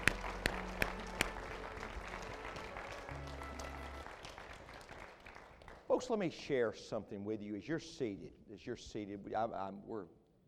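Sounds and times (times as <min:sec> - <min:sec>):
audience clapping hands in praise: 0:00.0 - 0:06.2
speech: 0:06.0 - 0:10.2.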